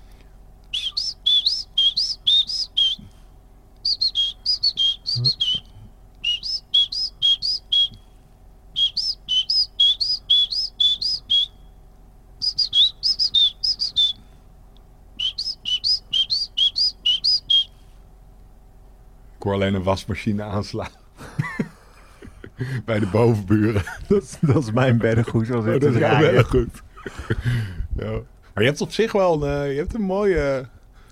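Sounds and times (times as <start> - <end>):
person whistling great tit call imitation: 0.7 - 3.1, 3.8 - 8.0, 8.8 - 11.6, 12.4 - 14.3, 15.2 - 17.8
speech: 19.5 - 21.0, 22.6 - 30.8
laughter: 20.8 - 27.7.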